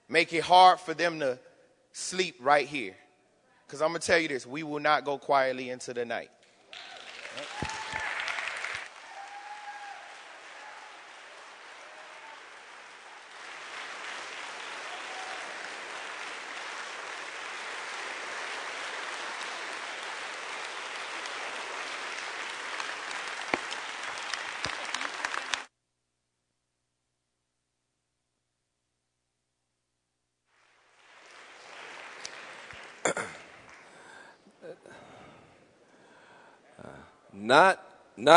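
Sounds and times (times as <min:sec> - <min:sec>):
speech: 0:00.1 - 0:03.0, 0:03.7 - 0:07.6, 0:37.5 - 0:38.3
crowd applauding: 0:06.7 - 0:25.7, 0:30.6 - 0:35.3.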